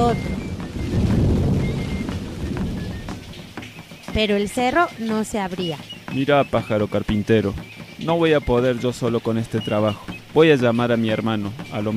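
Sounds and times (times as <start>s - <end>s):
loud deep thunder clap: 0.0s - 6.9s
faint rain-like hiss: 0.0s - 11.9s
speech: 0.1s - 0.5s, 4.2s - 11.9s.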